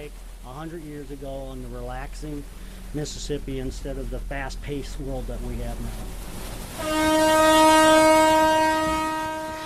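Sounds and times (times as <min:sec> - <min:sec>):
speech: 0:00.1 - 0:08.1
paddle steamboat whistle on the river: 0:06.8 - 0:09.6.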